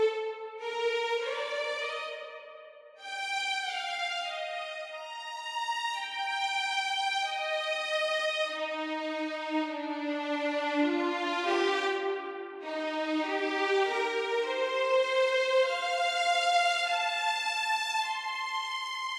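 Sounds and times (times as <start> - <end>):
violin: 0.0 - 19.1.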